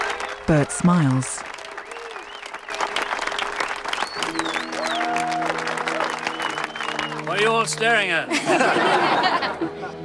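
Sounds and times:
crowd clapping: 0.0 - 9.6
speech: 0.5 - 1.4, 7.4 - 10.0
sharp whistles: 1.8 - 5.3, 6.2 - 7.4
laughter: 8.1 - 10.0.

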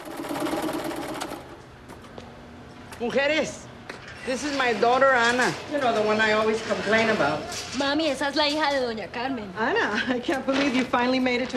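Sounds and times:
sewing machines whirring and clattering on a factory floor: 0.0 - 1.6
speech: 3.0 - 3.6, 4.2 - 11.5.

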